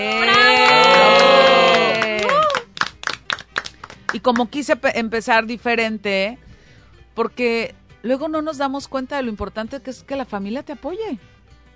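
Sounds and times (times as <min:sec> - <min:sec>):
audience applause: 0:00.0 - 0:04.2
speech: 0:04.1 - 0:06.5, 0:07.2 - 0:11.3.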